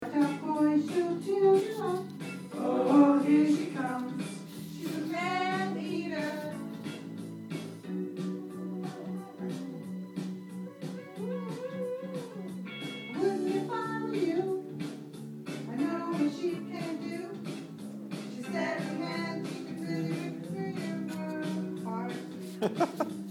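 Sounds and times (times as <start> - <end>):
mother singing: 0.0 - 6.9, 8.3 - 9.9, 11.0 - 14.8, 15.7 - 17.5, 18.3 - 22.4
laughter: 22.5 - 23.2.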